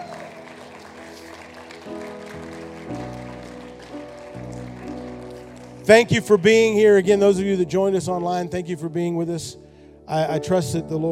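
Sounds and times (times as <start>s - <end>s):
audience hand clapping: 0.0s - 7.2s
speech: 5.9s - 11.1s.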